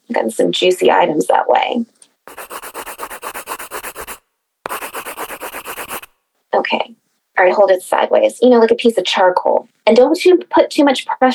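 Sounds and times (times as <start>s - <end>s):
speech: 0.1s - 2.4s, 6.7s - 11.3s
pencil shading rubbed over paper sheet: 2.3s - 6.2s.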